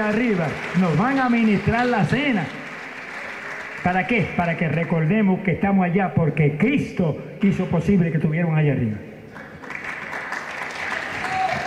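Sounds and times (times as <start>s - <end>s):
speech: 0.0s - 2.6s, 3.8s - 9.1s
church congregation applauding: 0.0s - 5.3s, 9.3s - 11.6s.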